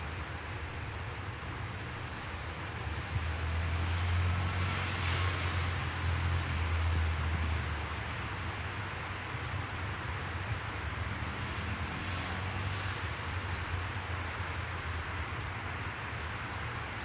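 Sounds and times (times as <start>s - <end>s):
urban park ambience: 0.0s - 17.0s.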